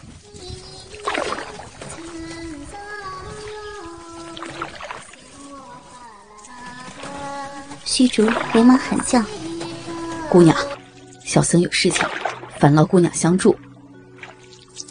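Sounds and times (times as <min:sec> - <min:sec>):
oars splashing as a small boat is rowed: 0:00.0 - 0:14.8
water lapping: 0:00.0 - 0:14.8
high voice singing: 0:00.2 - 0:10.9
speech: 0:07.9 - 0:09.4, 0:10.3 - 0:13.6.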